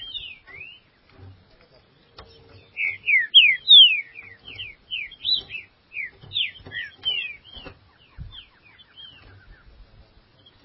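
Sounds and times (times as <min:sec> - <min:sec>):
green-winged saltator song: 0:00.0 - 0:00.9, 0:02.3 - 0:09.7.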